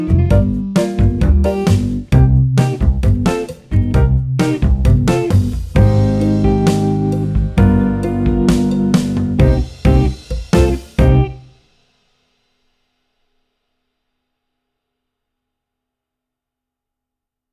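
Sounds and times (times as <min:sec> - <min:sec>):
tenor: 0:00.0 - 0:11.5.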